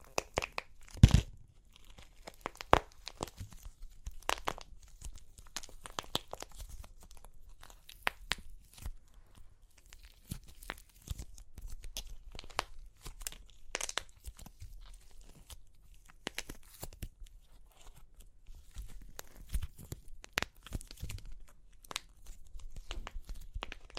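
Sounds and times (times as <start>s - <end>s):
crunchy clay cracking and crumbling: 0.0s - 23.9s.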